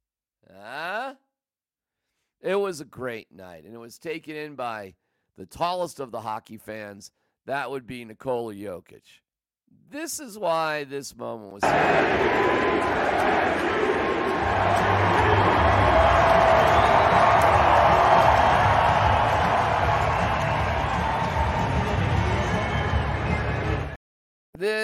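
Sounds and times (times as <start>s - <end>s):
speech: 2.4s - 17.6s, 24.6s - 24.8s
arena crowd chanting MVP: 11.6s - 23.6s
daughter clapping along with the MVP chant: 12.8s - 22.6s.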